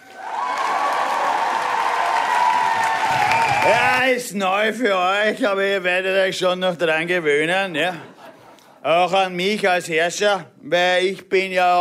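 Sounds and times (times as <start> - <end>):
artificial audience cheering sound effect: 0.0 - 4.2
speech: 3.7 - 8.2, 8.8 - 11.7
laughter: 7.8 - 9.0.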